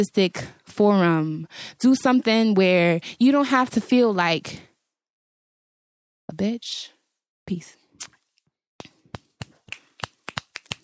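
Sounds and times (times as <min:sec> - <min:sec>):
speech: 0:00.0 - 0:04.7, 0:06.4 - 0:08.2
finger snapping: 0:09.4 - 0:10.8.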